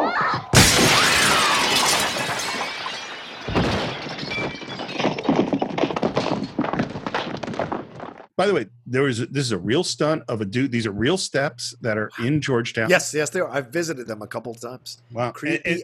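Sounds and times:
window glass shattering: 0:00.6 - 0:07.4
tinkling glass shards and debris falling: 0:01.1 - 0:07.5
speech: 0:08.4 - 0:15.8.

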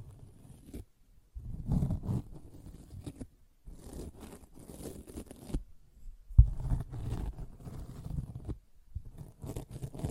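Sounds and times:
sponge scratched and squished: 0:00.0 - 0:05.6, 0:06.4 - 0:10.1.

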